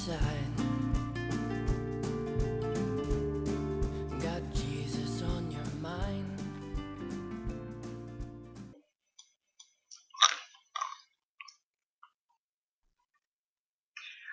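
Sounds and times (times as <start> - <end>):
speech: 0.0 - 0.4
music: 0.0 - 8.8
person chewing food: 9.2 - 12.2.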